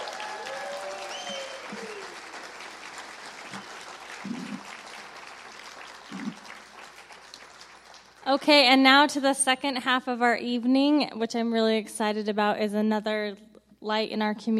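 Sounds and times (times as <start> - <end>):
audience applause: 0.0 - 8.3
speech: 8.3 - 14.5.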